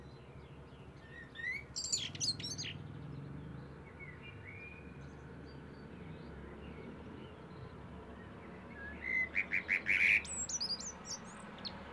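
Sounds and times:
Eurasian blackbird Turdus merula singing fluted warbling phrases with high squeaky notes: 0:00.7 - 0:02.8, 0:08.5 - 0:11.8.

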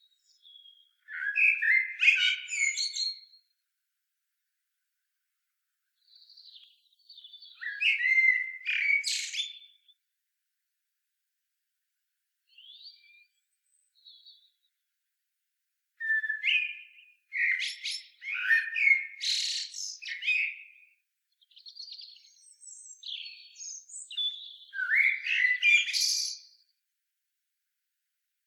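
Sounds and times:
common blackbird singing: 0:00.1 - 0:03.4, 0:06.0 - 0:10.0, 0:16.0 - 0:26.6.

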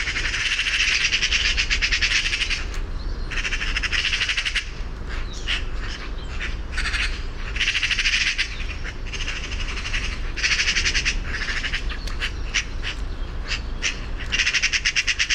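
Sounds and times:
Eurasian magpie Pica pica rattling call: 0:00.0 - 0:15.3.

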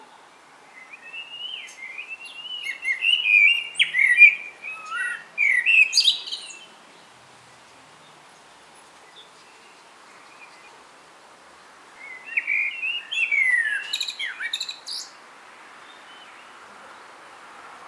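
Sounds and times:
common blackbird singing melodious whistles: 0:00.7 - 0:06.8, 0:12.0 - 0:15.2.

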